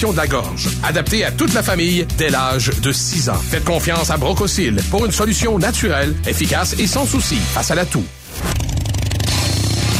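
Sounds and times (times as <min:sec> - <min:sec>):
speech: 0:00.0 - 0:08.7
motorcycle engine idling: 0:08.6 - 0:09.9.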